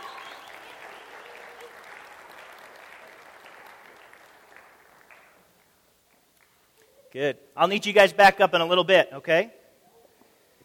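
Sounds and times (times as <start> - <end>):
audience applause for volunteers: 0.0 - 5.4
speech: 7.1 - 9.6.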